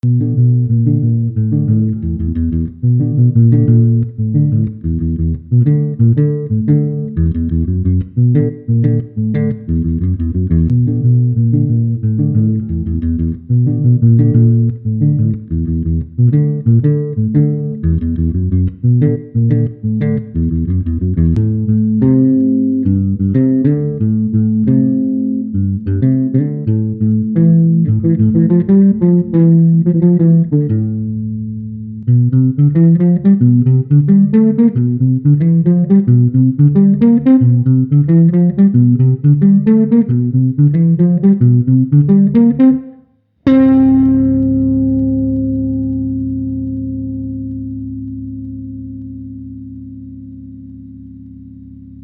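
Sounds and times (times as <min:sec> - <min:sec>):
bassline: 0:00.0 - 0:52.0.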